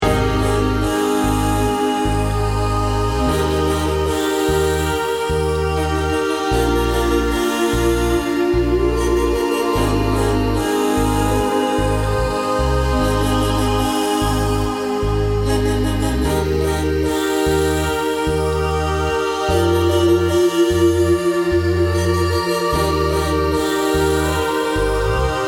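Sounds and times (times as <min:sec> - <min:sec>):
healing melody: 0:00.0 - 0:25.4.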